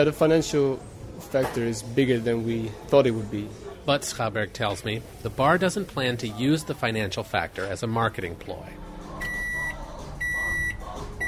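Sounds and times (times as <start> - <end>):
speech: 0.0 - 8.8
microwave oven beeping: 9.2 - 11.2.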